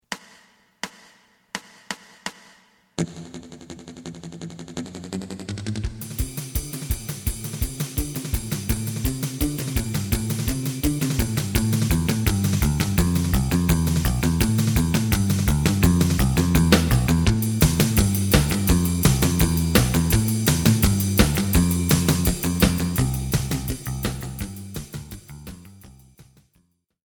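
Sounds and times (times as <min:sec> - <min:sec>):
lead melody: 0:06.0 - 0:25.8.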